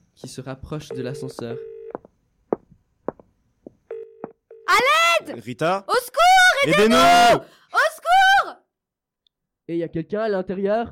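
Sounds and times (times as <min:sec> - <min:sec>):
speech: 0:00.2 - 0:01.7, 0:05.3 - 0:07.8, 0:09.7 - 0:10.9
telephone dialing tone: 0:00.9 - 0:02.0.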